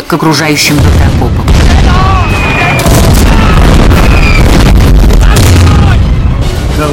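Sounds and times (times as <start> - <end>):
speech: 0.1 - 1.4, 6.8 - 6.9
artillery shells exploding near German bunkers in a wartime film scene: 0.8 - 6.9
artillery shells whistling: 2.1 - 3.0, 3.8 - 4.6.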